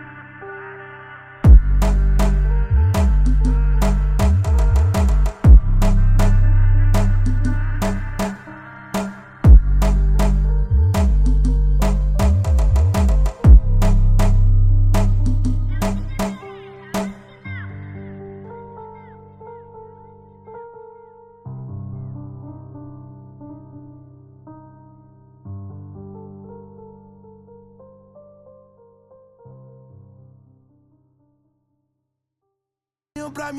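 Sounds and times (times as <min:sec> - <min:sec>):
retro bass: 0:01.5 - 0:08.4, 0:09.5 - 0:16.4.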